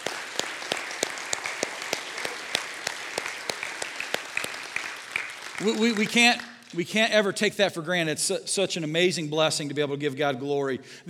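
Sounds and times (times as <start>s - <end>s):
crowd applauding: 0.0s - 7.1s
speech: 5.6s - 11.0s.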